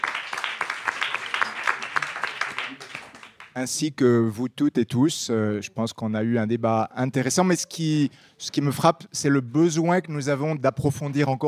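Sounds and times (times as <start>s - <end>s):
audience applause: 0.0s - 3.6s
speech: 3.6s - 11.4s.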